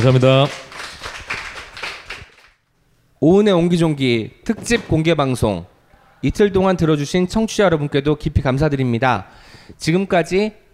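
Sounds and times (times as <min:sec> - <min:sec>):
speech: 0:00.0 - 0:00.7, 0:03.2 - 0:10.6
audience applause: 0:00.0 - 0:02.6.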